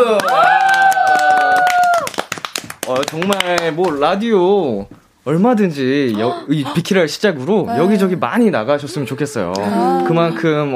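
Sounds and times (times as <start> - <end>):
hands clapping: 0.0 - 4.2
speech: 3.1 - 10.7.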